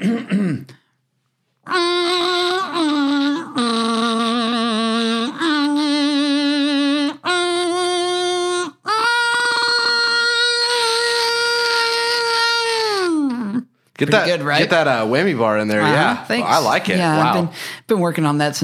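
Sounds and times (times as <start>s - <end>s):
loud buzzy electric kazoo playing the national anthem: 1.6s - 13.6s
speech: 14.0s - 18.6s.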